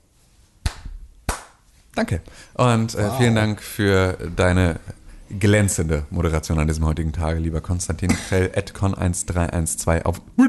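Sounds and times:
faint hiss: 0.0s - 10.4s
hand claps: 0.6s - 1.7s
speech: 2.0s - 10.4s.

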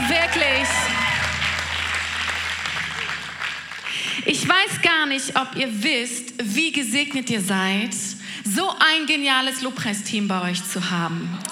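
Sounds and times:
crowd applause: 0.0s - 4.6s
speech: 4.6s - 11.4s.

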